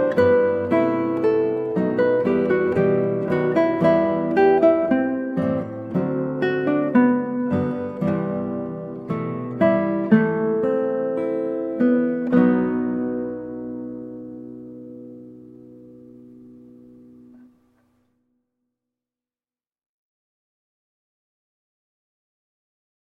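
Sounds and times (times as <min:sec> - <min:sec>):
slow classical piece played on guitar: 0:00.0 - 0:18.2.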